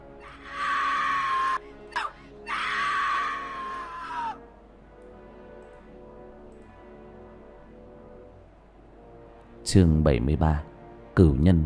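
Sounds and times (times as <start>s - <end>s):
agonized wailing screams: 0.2s - 1.6s, 2.4s - 4.4s
speech: 9.7s - 11.6s.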